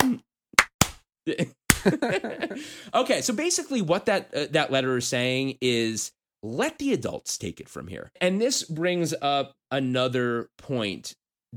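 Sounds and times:
slow clap: 0.0s - 1.0s, 1.7s - 2.1s
laughter: 1.3s - 2.7s
speech: 1.3s - 11.5s.

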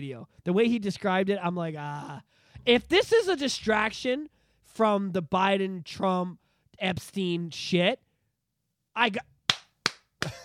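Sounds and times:
speech: 0.0s - 8.0s, 9.0s - 9.3s
mocking slow hand claps: 9.5s - 10.4s.

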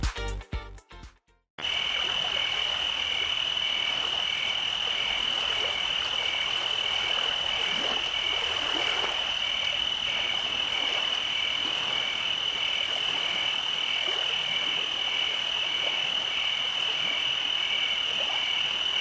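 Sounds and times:
pulsing chirp: 1.6s - 18.0s
cicadas and crickets trilling at night: 1.6s - 19.0s.

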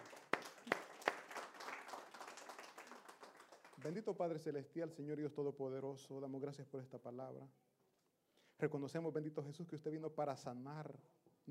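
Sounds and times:
audience applause: 0.0s - 4.0s
speech: 3.8s - 7.6s, 8.6s - 11.2s.

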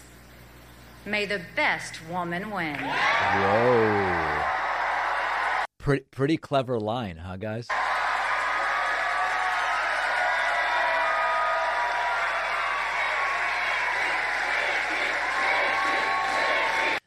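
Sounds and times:
speech: 1.0s - 4.6s, 5.8s - 7.9s
crowd cheering and applauding: 2.7s - 5.7s, 7.7s - 17.0s.

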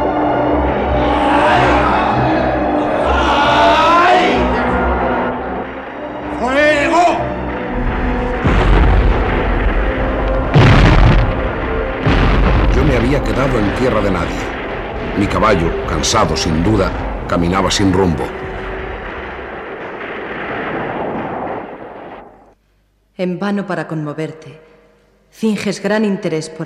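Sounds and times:
shouts and cries: 0.2s - 5.5s
cannon fire in battle: 7.5s - 22.6s
speech: 15.5s - 18.4s, 23.2s - 24.7s, 25.3s - 26.6s.

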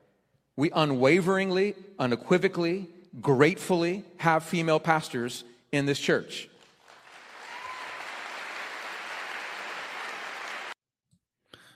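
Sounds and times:
speech: 0.6s - 6.5s
large church crowd applause: 6.8s - 10.8s.

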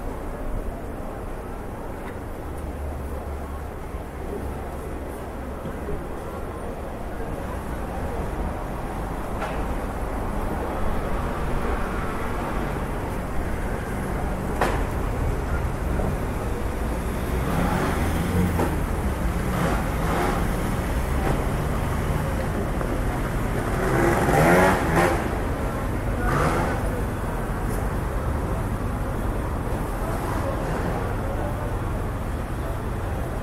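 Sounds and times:
city traffic rumbling: 0.0s - 33.4s.

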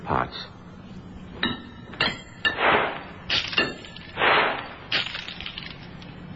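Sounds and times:
coins thrown across a chamber floor: 2.6s - 6.2s.

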